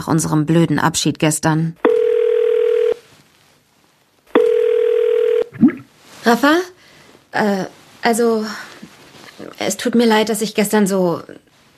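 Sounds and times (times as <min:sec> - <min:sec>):
speech: 0:00.0 - 0:01.9, 0:06.3 - 0:06.7, 0:07.3 - 0:08.7, 0:09.4 - 0:11.5
ringback tone of an outgoing telephone call: 0:01.8 - 0:03.0, 0:04.4 - 0:05.5.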